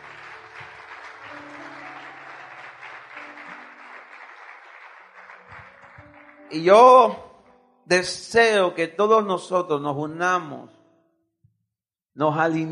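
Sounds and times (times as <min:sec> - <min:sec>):
audience applause: 0:00.0 - 0:07.2
speech: 0:06.5 - 0:07.2, 0:07.9 - 0:10.8, 0:12.2 - 0:12.6.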